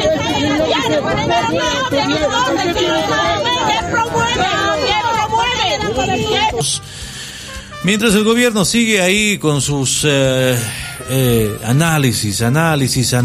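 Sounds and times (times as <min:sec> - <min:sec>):
protest crowd booing and shouting: 0:00.0 - 0:06.9
speech: 0:01.0 - 0:04.5, 0:07.8 - 0:13.2.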